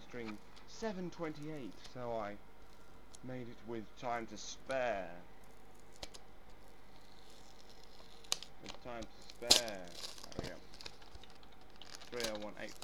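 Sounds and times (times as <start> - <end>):
speech: 0.1 - 2.5, 3.2 - 5.3, 8.8 - 10.6, 12.1 - 12.8
plastic bottle being ripped up: 5.6 - 12.8.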